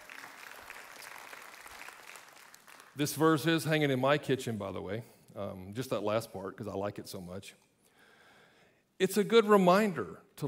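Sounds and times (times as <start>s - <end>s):
audience applause: 0.0s - 3.0s
speech: 3.0s - 7.7s, 9.0s - 10.4s.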